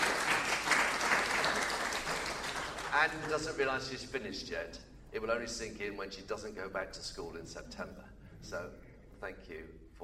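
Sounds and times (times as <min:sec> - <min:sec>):
gathering applauding a retiring teacher: 0:00.0 - 0:03.4
speech: 0:02.9 - 0:10.0.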